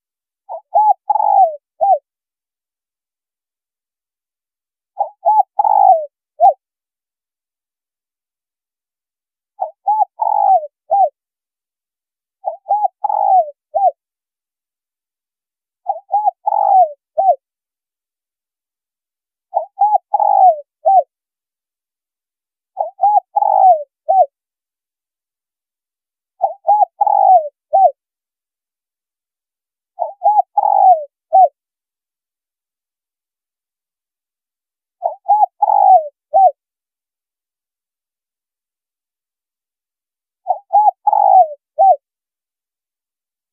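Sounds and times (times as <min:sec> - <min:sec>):
spotted dove cooing: 0:00.5 - 0:02.0, 0:05.0 - 0:06.6, 0:09.6 - 0:11.2, 0:12.4 - 0:14.0, 0:15.8 - 0:17.4, 0:19.5 - 0:21.1, 0:22.8 - 0:24.3, 0:26.4 - 0:28.0, 0:30.0 - 0:31.6, 0:35.0 - 0:36.6, 0:40.4 - 0:42.0.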